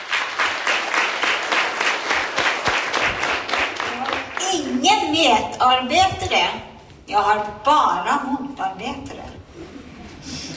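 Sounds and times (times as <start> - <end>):
audience applause at a revue: 0.0 - 4.5
speech: 5.2 - 9.2.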